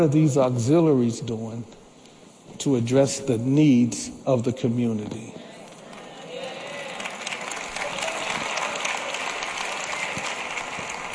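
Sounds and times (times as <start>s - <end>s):
speech: 0.0s - 1.8s, 2.6s - 5.5s
audience clapping: 5.7s - 11.1s.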